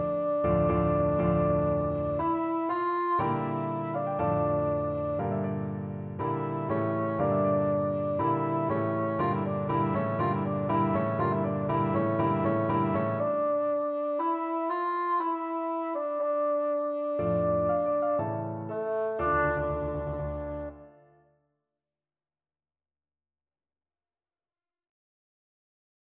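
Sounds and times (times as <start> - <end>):
bassoon: 0.0 - 5.6, 6.2 - 21.2.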